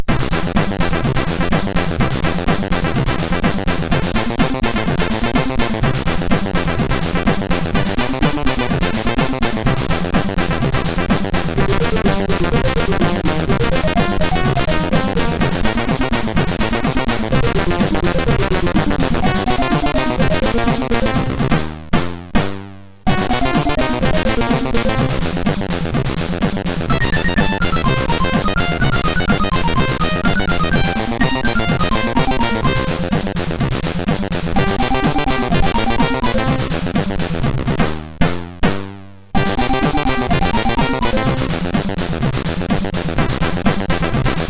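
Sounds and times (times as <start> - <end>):
rock line on SID MOS6581R4 chip: 0.0 - 38.3, 39.4 - 44.4.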